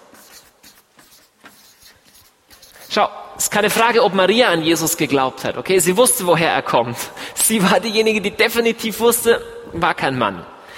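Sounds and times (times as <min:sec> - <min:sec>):
pen or marker handwriting: 0:00.0 - 0:03.0
speech: 0:02.9 - 0:10.6.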